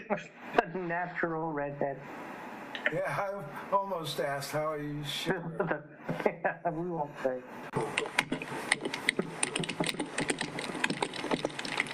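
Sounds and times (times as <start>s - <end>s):
speech: 0.1s - 9.0s
typing on a computer keyboard: 7.8s - 11.9s.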